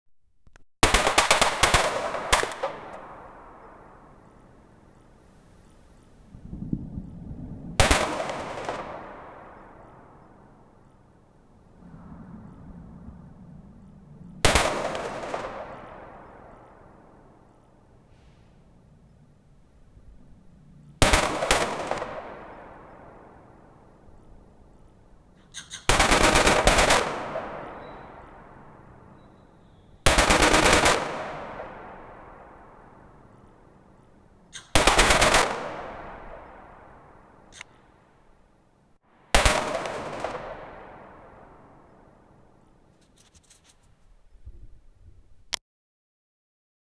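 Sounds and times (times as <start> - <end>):
shotgun firing: 0.8 - 3.2, 14.4 - 16.5, 21.0 - 22.9, 25.9 - 28.1, 30.1 - 32.0, 34.6 - 36.4, 39.4 - 41.2.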